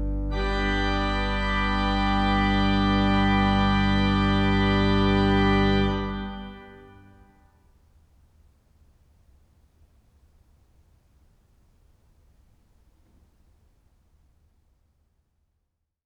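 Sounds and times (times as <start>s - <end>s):
organ fanfare: 0.0s - 7.3s.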